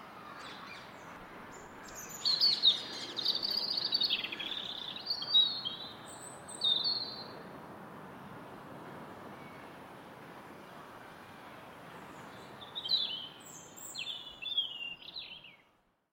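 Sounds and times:
loud garden robin singing in London: 0:00.3 - 0:07.4, 0:12.2 - 0:15.7.

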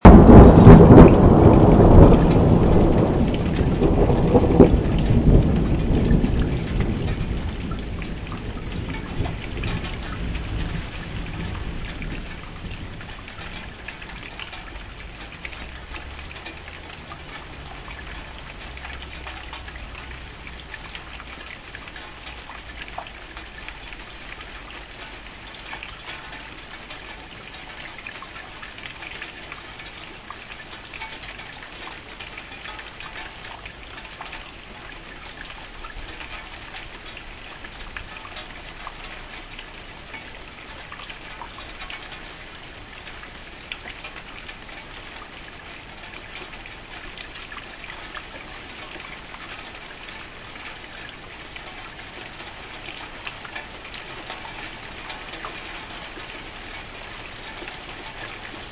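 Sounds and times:
thunder: 0:00.0 - 0:14.3
rain on metal chairs: 0:00.0 - 0:58.7.

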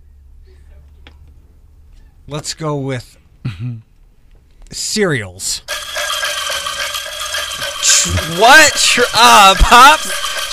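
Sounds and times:
speech: 0:02.3 - 0:03.9, 0:04.7 - 0:05.7, 0:08.0 - 0:10.5
ticking timer: 0:05.7 - 0:10.5.

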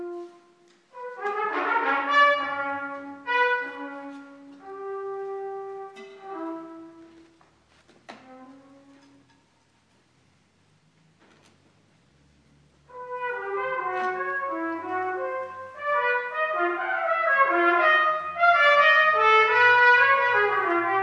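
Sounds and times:
trumpet solo: 0:00.0 - 0:07.4, 0:08.1 - 0:09.2, 0:12.9 - 0:21.0.

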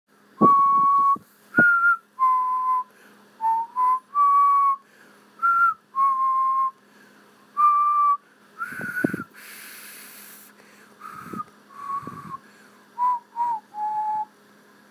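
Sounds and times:
failed whistling: 0:00.4 - 0:04.8, 0:05.4 - 0:06.8, 0:07.6 - 0:09.4, 0:11.0 - 0:12.4, 0:13.0 - 0:14.3.

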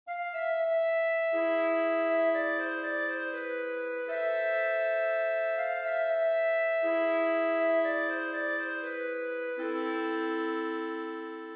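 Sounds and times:
music: 0:00.1 - 0:11.5.

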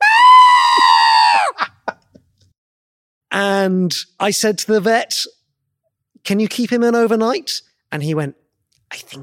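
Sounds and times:
human voice imitating a rabbit's scream of pain: 0:00.0 - 0:01.9
speech: 0:03.6 - 0:05.4, 0:06.2 - 0:09.2.

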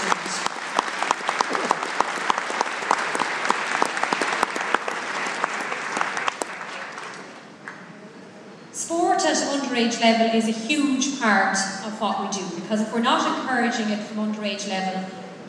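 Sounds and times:
audience applause: 0:00.0 - 0:07.8
speech: 0:09.8 - 0:15.2.

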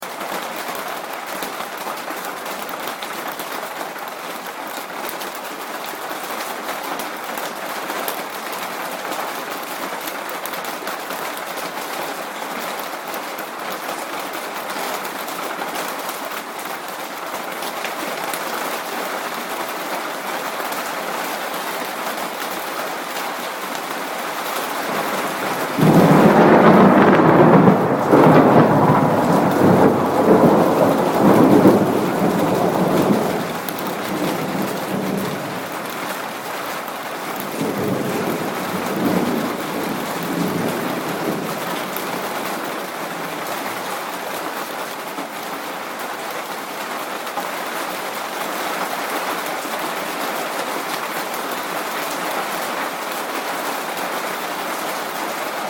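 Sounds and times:
rain: 0:00.0 - 0:55.6
thunder: 0:24.9 - 0:36.0, 0:37.4 - 0:43.0.

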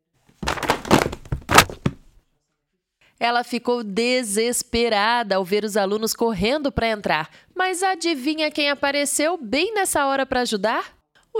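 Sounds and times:
books and coats dropped on the ground: 0:00.3 - 0:02.2
speech: 0:03.2 - 0:11.3.

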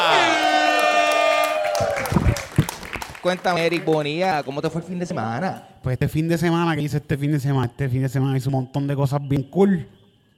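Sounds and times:
loud applause and cheering: 0:00.0 - 0:04.9
speech: 0:03.2 - 0:10.0.

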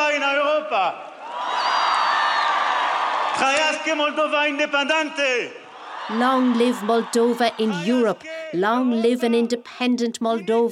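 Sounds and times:
speech: 0:00.8 - 0:01.2, 0:03.4 - 0:10.7
cheering crowd in Moldova: 0:01.1 - 0:08.1.

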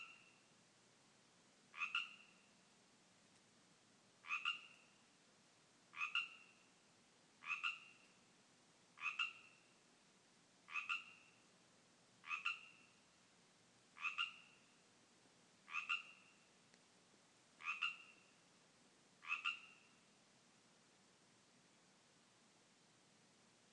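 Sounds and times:
Pacific tree frogs calling in a yard: 0:00.0 - 0:00.5, 0:01.7 - 0:02.6, 0:04.2 - 0:05.1, 0:05.9 - 0:06.8, 0:07.4 - 0:08.2, 0:09.0 - 0:09.8, 0:10.7 - 0:11.5, 0:12.2 - 0:13.0, 0:14.0 - 0:14.8, 0:15.6 - 0:16.5, 0:17.6 - 0:18.4, 0:19.2 - 0:20.0.

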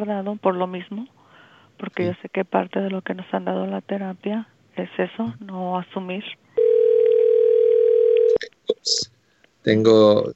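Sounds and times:
speech: 0:00.0 - 0:01.2, 0:01.8 - 0:06.4, 0:08.8 - 0:10.3
telephone ringing: 0:06.6 - 0:08.4.

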